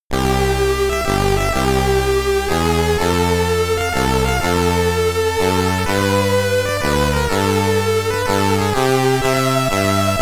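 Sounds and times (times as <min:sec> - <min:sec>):
Commodore 64 SID chiptune music in stereo: 0:00.1 - 0:10.2.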